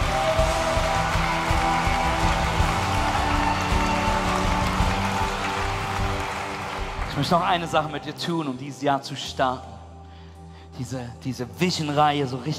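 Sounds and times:
audience applauding: 0.0s - 8.0s
speech: 7.2s - 9.7s, 10.8s - 12.5s.

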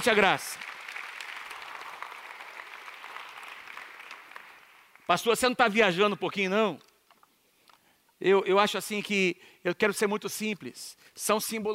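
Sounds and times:
speech: 0.0s - 0.7s, 5.1s - 6.9s, 8.2s - 11.7s
audience applause: 0.0s - 5.1s.

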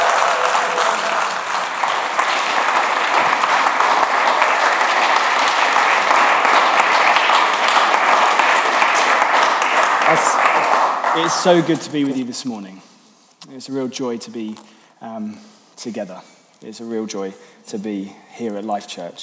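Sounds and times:
cheers and whoops: 0.0s - 2.2s
audience applauding: 0.0s - 12.2s
speech: 11.2s - 19.2s.

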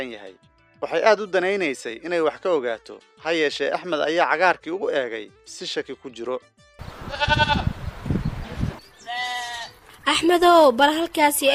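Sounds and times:
speech: 0.0s - 7.7s, 10.1s - 11.5s
goats and sheep bleating while grazing on pasture: 6.8s - 7.8s, 9.0s - 9.8s.

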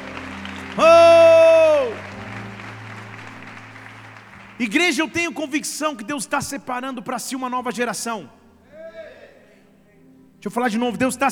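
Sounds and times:
audience applause: 0.0s - 5.2s
sustained low musical tones: 0.0s - 5.7s
speech: 4.6s - 8.4s, 10.4s - 11.3s.

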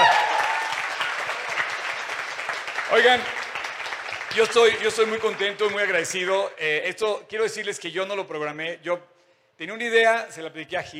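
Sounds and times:
audience applause: 0.0s - 6.2s
speech: 2.9s - 3.4s, 4.3s - 10.9s.

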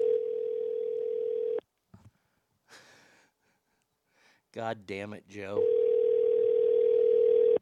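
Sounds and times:
telephone call line tone waiting to be answered: 0.0s - 1.6s, 5.6s - 7.5s
speech: 4.5s - 5.8s.

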